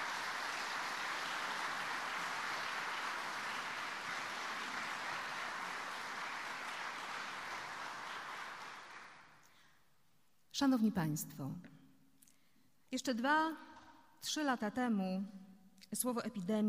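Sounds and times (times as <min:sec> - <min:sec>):
audience applause: 0:00.0 - 0:09.4
speech: 0:10.6 - 0:11.8, 0:12.9 - 0:16.6.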